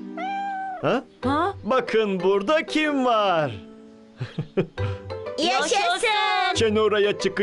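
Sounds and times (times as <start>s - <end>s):
cat meowing: 0.1s - 1.1s
speech: 1.8s - 4.7s, 5.4s - 7.4s.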